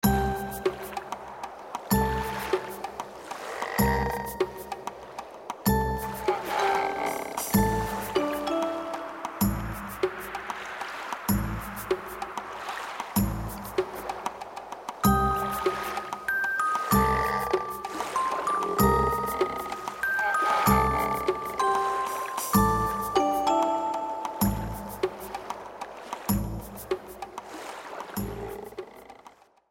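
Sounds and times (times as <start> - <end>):
music: 0.0 - 1.2, 1.9 - 3.0, 3.8 - 5.0, 5.6 - 14.4, 15.0 - 27.3.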